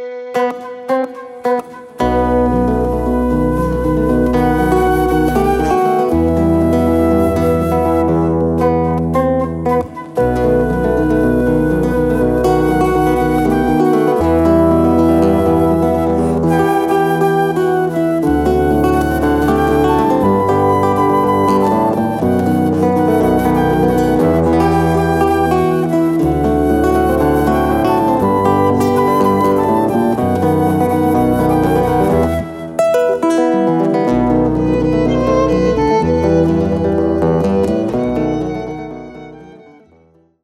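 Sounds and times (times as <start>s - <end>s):
Balkan blues music: 0.3s - 39.8s.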